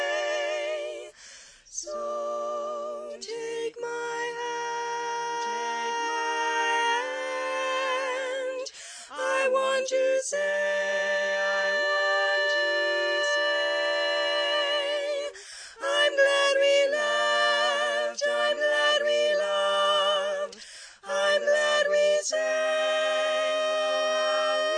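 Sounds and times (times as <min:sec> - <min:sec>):
tenor voice singing: 0:00.0 - 0:24.7.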